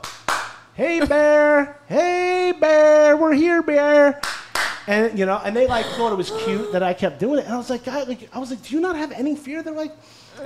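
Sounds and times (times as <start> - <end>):
hand clapping: 0.0 - 0.7, 4.2 - 4.9
speech: 0.8 - 4.2, 4.8 - 10.4.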